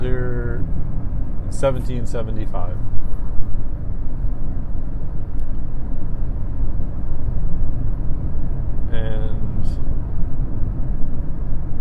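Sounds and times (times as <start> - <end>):
car engine and road noise driving through Zurich: 0.0 - 11.8
speech: 1.6 - 3.0.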